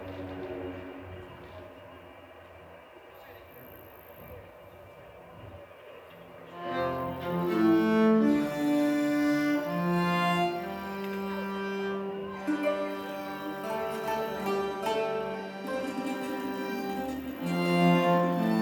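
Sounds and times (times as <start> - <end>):
song: 6.9 - 18.6.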